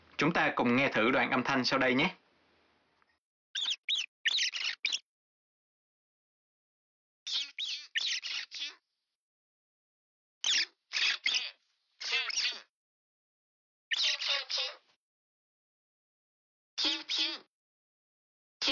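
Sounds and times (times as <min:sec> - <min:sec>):
speech: 0:00.2 - 0:02.2
mouse squeaking: 0:03.5 - 0:05.1, 0:07.2 - 0:08.8, 0:10.4 - 0:12.7, 0:13.9 - 0:14.8, 0:16.8 - 0:17.5.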